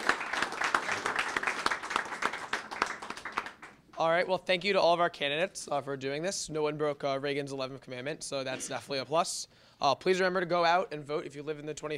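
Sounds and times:
crowd applauding candidates: 0.0 - 3.8
speech: 4.0 - 11.9.

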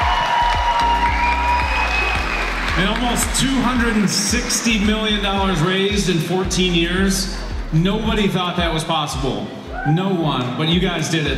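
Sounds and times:
audience applause: 0.0 - 5.7
speech: 2.8 - 11.3.

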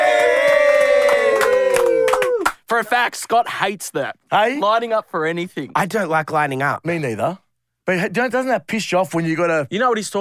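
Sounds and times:
audience high shouted cheer for guests: 0.0 - 2.6
scattered sharp hand claps: 0.4 - 2.6
speech: 2.7 - 10.1.

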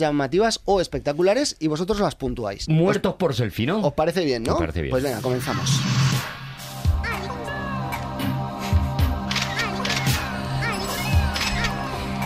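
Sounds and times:
speech: 0.0 - 6.0
electronic music track about photography with sustained synth tones: 5.0 - 12.2
camera shutter release clicks: 9.2 - 10.4, 11.2 - 11.8.

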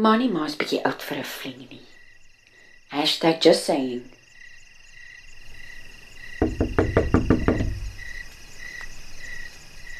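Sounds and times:
speech: 0.0 - 1.9, 2.9 - 4.2
crickets chirping: 0.0 - 9.9
knocking on a door: 6.4 - 8.2.

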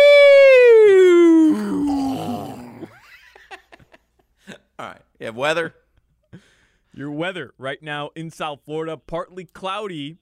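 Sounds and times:
exaggerated fake yawn: 0.0 - 3.0
speech: 5.3 - 6.4, 7.0 - 10.1.

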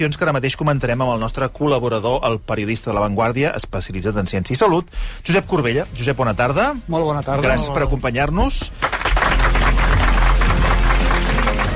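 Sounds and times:
speech: 0.0 - 9.0
person clapping hands forcefully: 8.6 - 11.7.

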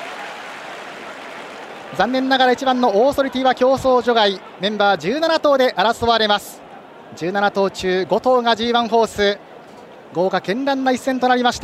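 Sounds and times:
racecourse crowd applauding at Hanshin Racecourse after a fanfare: 0.0 - 5.3
speech: 1.9 - 9.4, 10.1 - 11.6.

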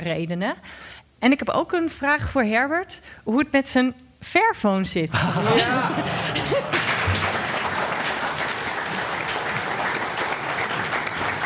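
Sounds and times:
speech: 0.0 - 6.9
laughter: 5.1 - 9.8
audience applause: 5.1 - 11.4.

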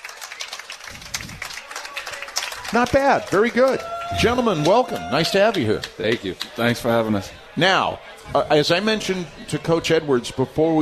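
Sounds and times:
audience applause: 0.0 - 6.9
speech: 2.7 - 10.8.

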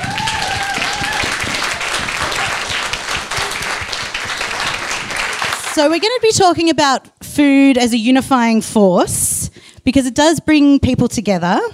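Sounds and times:
audience applause welcoming a panel of authors at a book talk: 0.0 - 6.0
speech: 5.8 - 11.7.

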